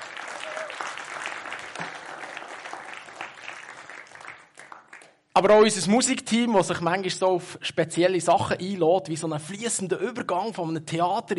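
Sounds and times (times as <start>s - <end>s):
audience applause: 0.0s - 5.2s
speech: 5.4s - 11.3s.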